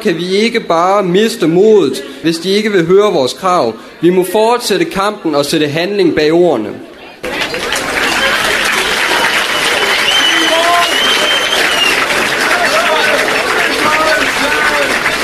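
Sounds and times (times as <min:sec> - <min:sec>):
speech: 0:00.0 - 0:06.9
audience applause after a speech at a rally for free education: 0:07.2 - 0:15.2
people cheering: 0:07.2 - 0:15.2.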